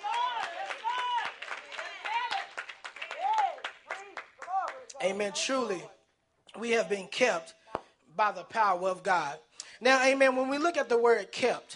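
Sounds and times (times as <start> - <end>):
audience clapping hands: 0.0 - 5.2
speech: 5.0 - 6.0, 6.6 - 7.6, 8.2 - 11.7.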